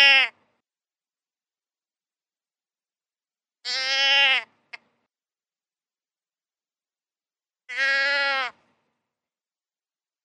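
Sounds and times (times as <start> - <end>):
deer bleating: 0.0 - 0.4, 3.6 - 4.5, 7.7 - 8.6.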